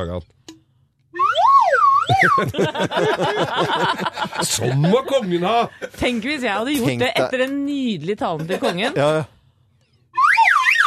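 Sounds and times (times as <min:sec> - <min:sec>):
speech: 0:00.0 - 0:00.4, 0:02.1 - 0:09.4
whistle blown: 0:01.1 - 0:02.5, 0:10.1 - 0:10.8
laughter: 0:02.1 - 0:06.2, 0:08.3 - 0:09.2.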